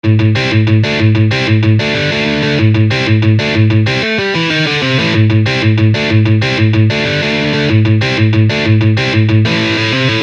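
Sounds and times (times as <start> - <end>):
musical lick: 0.1 - 10.2.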